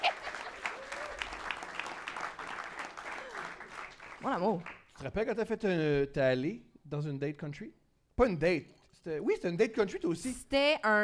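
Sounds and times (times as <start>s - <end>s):
audience applause: 0.0s - 4.9s
speech: 4.2s - 11.0s.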